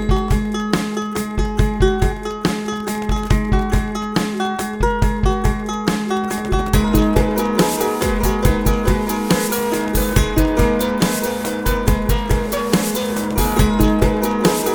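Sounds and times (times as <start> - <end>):
ronroco string loop: 0.0 - 14.7.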